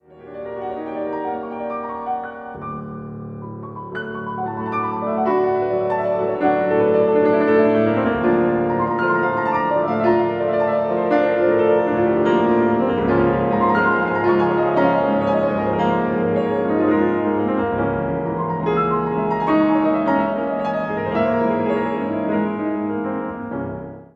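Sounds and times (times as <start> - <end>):
agitated piano etude in C minor: 0.0 - 24.1.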